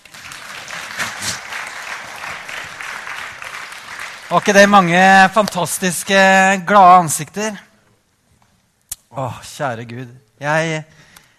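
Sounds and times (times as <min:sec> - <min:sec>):
audience clapping: 0:00.0 - 0:06.6
speech: 0:04.3 - 0:07.7, 0:09.2 - 0:11.1.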